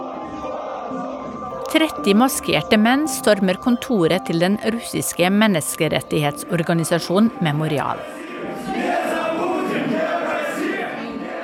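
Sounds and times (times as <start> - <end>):
nationalist crowd shouting: 0.0 - 1.6, 8.0 - 11.4
speech: 1.7 - 8.2.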